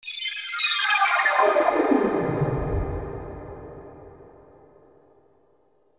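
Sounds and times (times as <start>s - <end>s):
ambience: 1.2s - 5.0s.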